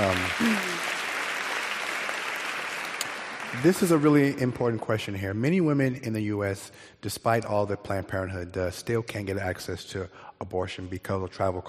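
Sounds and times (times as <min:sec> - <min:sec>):
speech: 0:00.0 - 0:00.8, 0:03.5 - 0:11.6
audience applause: 0:00.0 - 0:04.5.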